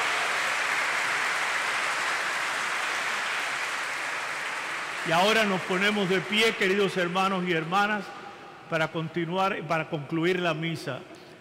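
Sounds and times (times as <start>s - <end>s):
audience applause: 0.0s - 7.7s
speech: 5.0s - 11.3s.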